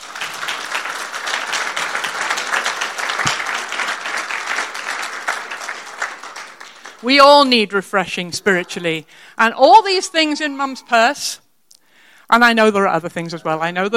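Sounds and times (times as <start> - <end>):
audience clapping: 0.0 - 7.6
speech: 7.0 - 11.4, 12.3 - 13.9.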